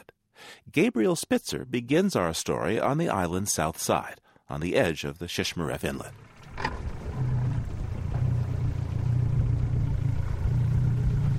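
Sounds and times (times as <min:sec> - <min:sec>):
speech: 0:00.6 - 0:06.3
115 horsepower outboard motor on a plywood boat: 0:06.1 - 0:11.3.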